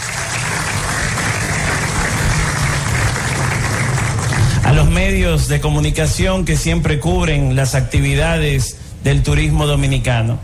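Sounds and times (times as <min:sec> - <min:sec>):
audience applause: 0:00.0 - 0:05.1
speech: 0:04.8 - 0:10.4.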